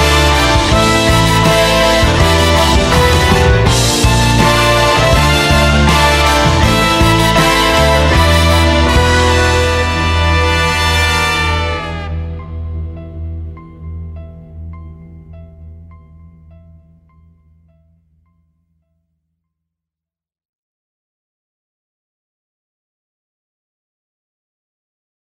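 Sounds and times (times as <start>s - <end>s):
instrumental music: 0.0s - 18.3s.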